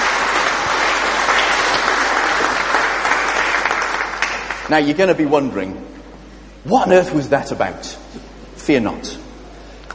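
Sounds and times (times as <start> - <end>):
audience applauding: 0.0 - 4.8
speech: 4.7 - 6.0, 6.6 - 8.0, 8.6 - 9.2.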